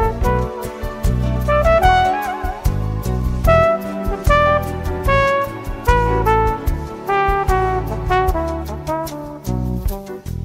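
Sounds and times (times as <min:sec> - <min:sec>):
flugelhorn: 0:00.0 - 0:10.3.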